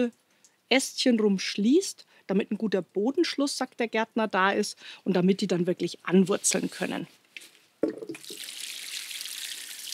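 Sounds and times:
speech: 0.0 - 8.4
rainwater poured to water in plant cuttings: 7.9 - 9.9.

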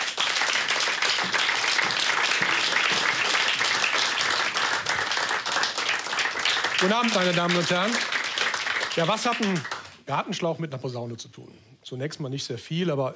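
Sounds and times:
audience applause: 0.0 - 10.0
speech: 6.8 - 8.1, 9.0 - 13.1.

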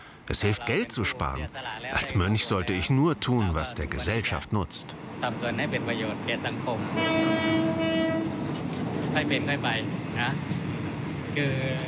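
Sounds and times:
speech: 0.3 - 7.9, 9.2 - 10.6, 11.4 - 11.8
moving train: 4.9 - 11.8.

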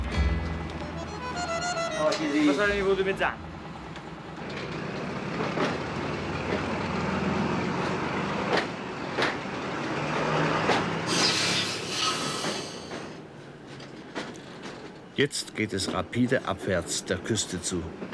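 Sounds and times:
train rumbling on track: 0.0 - 18.1
speech: 2.0 - 3.4, 15.2 - 18.1
wheels clacking over rail joints: 2.9 - 18.1
high hiss or screech: 11.1 - 12.9.

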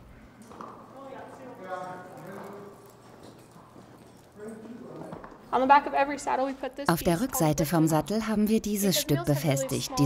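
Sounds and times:
mule hooves clip-clopping: 1.7 - 5.4
speech: 5.5 - 10.0.

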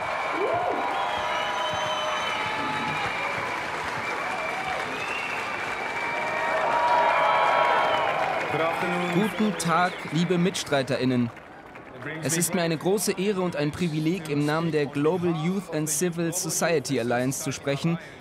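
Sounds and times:
audience applause: 0.0 - 14.1
speech: 8.6 - 11.4, 12.0 - 18.2.

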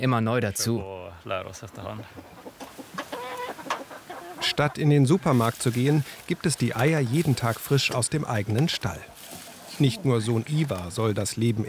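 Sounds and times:
speech: 0.0 - 2.4, 4.4 - 9.2, 9.8 - 11.6
chickens clucking: 1.4 - 11.6.

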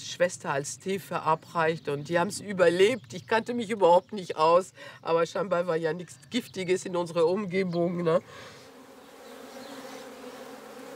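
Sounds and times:
speech: 0.2 - 8.6
honeybees buzzing around lavender: 7.9 - 10.9.

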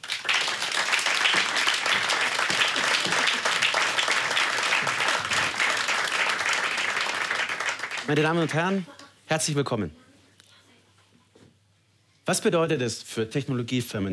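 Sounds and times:
audience applause: 0.0 - 8.8
speech: 8.1 - 10.0, 12.3 - 14.1.

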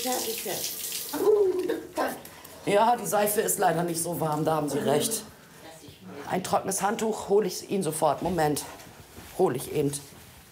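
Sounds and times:
water running from a tap as a caregiver washes a person's hair: 0.0 - 1.9
speech: 0.0 - 5.4, 6.1 - 8.8, 9.4 - 10.1.

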